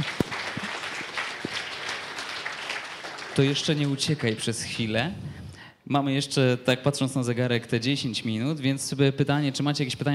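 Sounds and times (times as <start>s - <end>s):
audience applause: 0.0s - 4.6s
speech: 3.4s - 10.1s.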